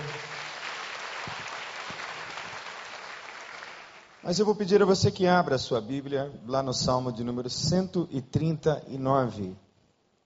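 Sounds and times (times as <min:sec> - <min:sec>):
audience applause: 0:00.0 - 0:04.1
speech: 0:04.3 - 0:09.6.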